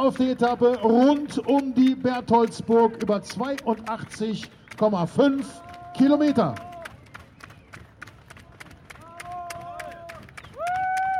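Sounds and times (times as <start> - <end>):
speech: 0.0 - 6.7
spectators cheering and clapping at a race finish: 0.0 - 11.1
shouts and whoops: 5.4 - 7.0, 8.9 - 11.1.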